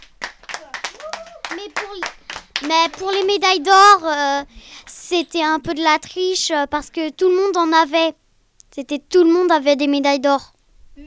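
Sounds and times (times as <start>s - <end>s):
hand clapping celebrating competition medals: 0.0s - 3.5s
talking voices: 1.4s - 8.1s
speech: 1.6s - 8.2s, 8.8s - 11.0s.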